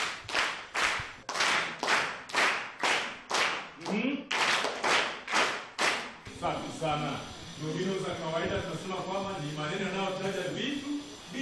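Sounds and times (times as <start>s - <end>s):
school class clapping hands in unison: 0.0s - 6.2s
speech: 6.4s - 11.3s.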